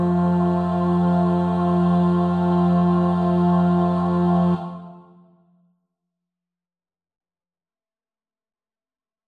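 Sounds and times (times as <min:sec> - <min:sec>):
bass: 0:00.0 - 0:04.8.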